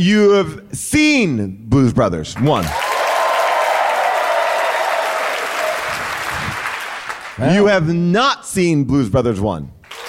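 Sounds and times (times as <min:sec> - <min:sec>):
speech: 0:00.0 - 0:02.9, 0:07.4 - 0:09.8
audience clapping: 0:02.4 - 0:07.5, 0:09.8 - 0:10.0.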